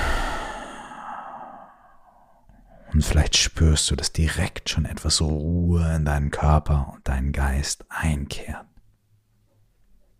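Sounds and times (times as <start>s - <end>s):
deep breath in and out during a guided meditation: 0.0s - 2.9s
speech: 3.0s - 8.7s.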